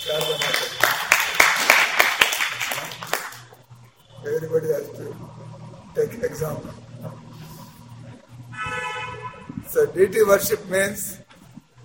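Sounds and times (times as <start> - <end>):
audience clapping: 0.0 - 3.6
speech: 4.5 - 6.8, 10.0 - 11.2.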